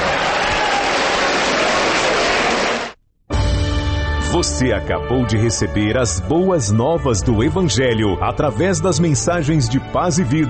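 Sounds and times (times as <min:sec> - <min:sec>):
audience clapping hands: 0:00.0 - 0:03.0
speech: 0:04.3 - 0:10.4.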